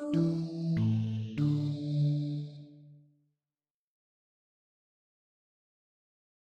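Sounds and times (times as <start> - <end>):
basses: 0.2 - 2.2.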